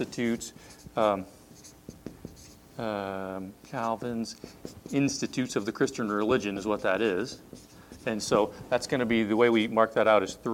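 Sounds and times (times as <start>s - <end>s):
speech: 0.0s - 1.4s, 2.8s - 10.5s
pen scratching on paper while handwriting: 0.0s - 2.6s, 3.6s - 10.2s.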